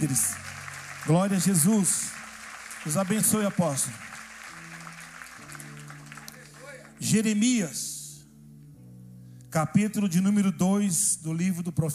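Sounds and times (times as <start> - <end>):
speech: 0.0 - 0.4, 1.0 - 2.2, 2.8 - 4.1, 7.0 - 7.9, 9.5 - 11.9
church audience clapping: 0.0 - 7.4
sustained low keyboard chords: 0.0 - 11.9.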